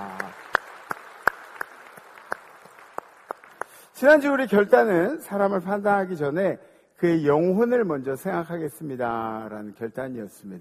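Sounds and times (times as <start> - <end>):
audience applause: 0.0 - 3.8
speech: 4.0 - 10.5.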